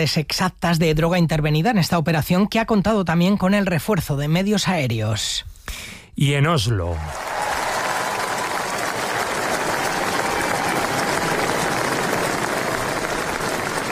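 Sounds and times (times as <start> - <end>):
speech: 0.0 - 7.3
crowd applause and ovation for the new king of Norway at the Royal Palace: 7.0 - 13.9.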